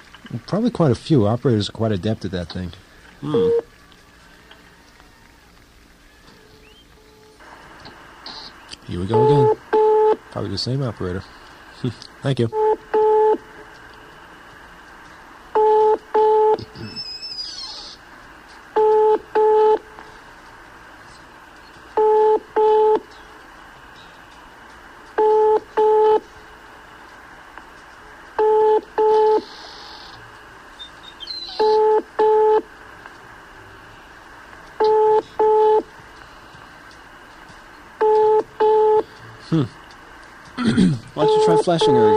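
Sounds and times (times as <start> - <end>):
speech: 0.3 - 3.7, 8.9 - 9.6, 10.4 - 12.6, 41.7 - 42.1
telephone line ringing tones: 9.1 - 10.2, 12.5 - 13.4, 15.5 - 16.6, 18.8 - 19.8, 22.0 - 23.0, 25.2 - 26.2, 28.4 - 29.5, 31.6 - 32.7, 34.8 - 35.9, 38.0 - 39.0, 41.2 - 42.1.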